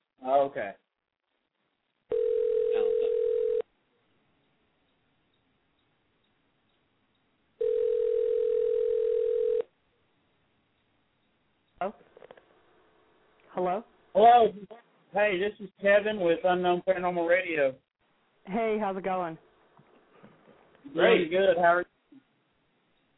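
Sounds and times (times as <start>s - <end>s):
speech: 0.4s - 0.9s, 11.8s - 12.1s, 13.6s - 17.8s, 18.4s - 19.4s, 20.9s - 21.9s
telephone ringing tone while a number is dialled: 2.1s - 3.7s, 7.6s - 9.7s.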